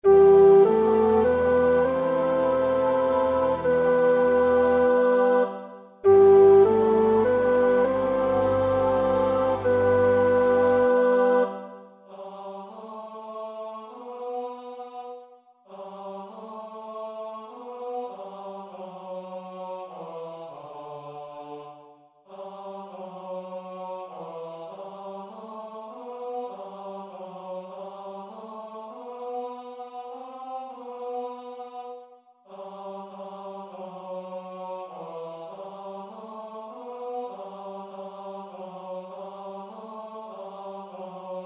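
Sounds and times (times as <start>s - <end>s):
tenor singing: 0.0s - 12.3s.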